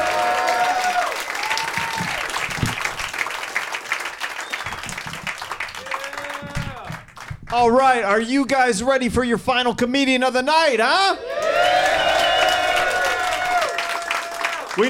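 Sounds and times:
comedy show audience clapping for comedian Eddie Bravo: 0.0 - 7.8, 11.3 - 14.8
speech: 7.5 - 11.8.

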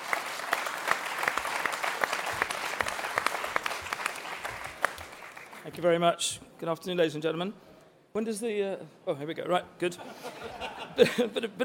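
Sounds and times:
audience applause: 0.0 - 5.7
speech: 5.7 - 11.6
laughter: 10.0 - 11.4.

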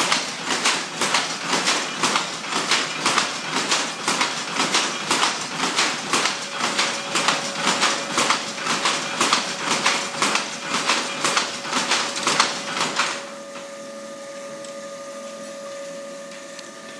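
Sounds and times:
weaving looms driven by belts from steel roof rods clattering: 0.0 - 13.2.

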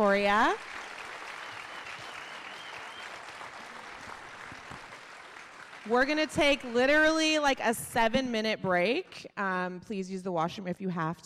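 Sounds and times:
speech: 0.0 - 0.8, 5.8 - 11.2
audience round of applause: 0.4 - 6.3.

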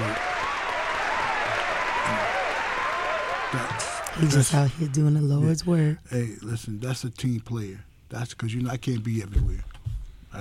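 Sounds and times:
audience applause: 0.0 - 4.9
speech: 4.2 - 9.7.

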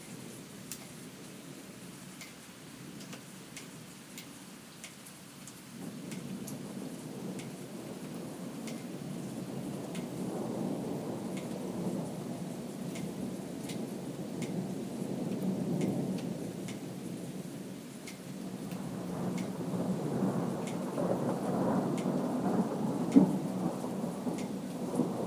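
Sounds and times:
thunderstorm: 5.6 - 25.2.

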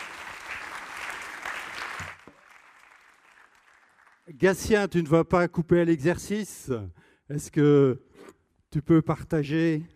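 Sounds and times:
audience applause: 0.0 - 4.3
speech: 4.3 - 8.1, 8.7 - 9.9.

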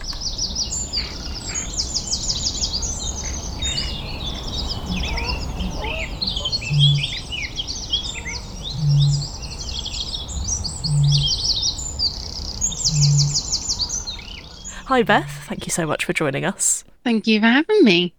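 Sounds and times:
dawn chorus of birdsong at Hamwell Nature Reserve: 0.0 - 16.0
speech: 14.9 - 18.1.

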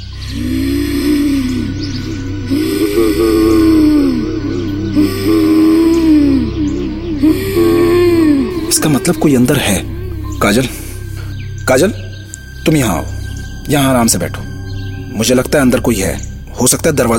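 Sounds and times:
strange growling: 0.0 - 17.1
speech: 9.1 - 10.8, 11.7 - 12.1, 12.7 - 14.5, 15.2 - 17.1.

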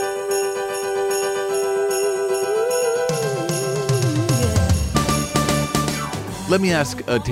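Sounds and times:
sleigh bells jingling in a song: 0.0 - 6.8
speech: 6.5 - 7.3.

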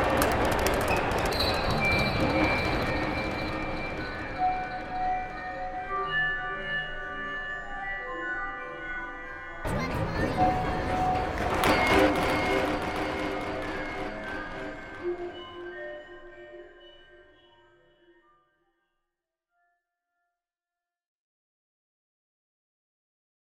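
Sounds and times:
soundscape: 0.0 - 18.2.

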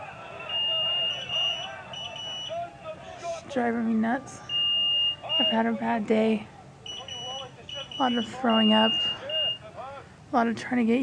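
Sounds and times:
IV pump alarm beeping: 0.4 - 2.6, 4.5 - 5.8, 6.8 - 9.6
speech: 3.5 - 4.5, 5.4 - 6.6, 8.0 - 9.2, 10.3 - 11.0.

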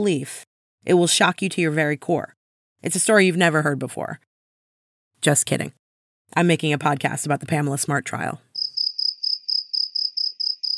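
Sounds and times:
speech: 0.0 - 4.3, 5.2 - 8.4
cricket chirping: 8.6 - 10.7.

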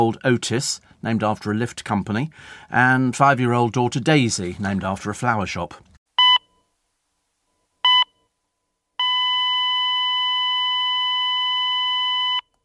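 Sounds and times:
speech: 0.0 - 5.9
heart monitor beeps: 6.2 - 6.5, 7.8 - 8.2, 9.0 - 12.5.

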